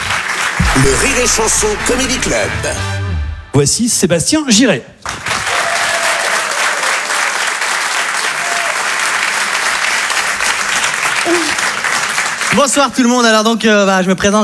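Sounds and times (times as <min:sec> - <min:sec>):
comedy club audience applause: 0:00.0 - 0:02.4, 0:05.0 - 0:13.0
speech: 0:00.8 - 0:03.0, 0:03.6 - 0:05.3, 0:12.6 - 0:14.4.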